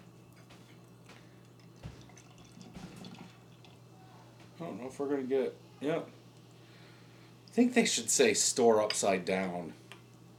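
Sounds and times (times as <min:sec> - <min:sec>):
beer pouring into a glass: 0:01.4 - 0:03.9
speech: 0:04.6 - 0:06.2, 0:07.6 - 0:09.8.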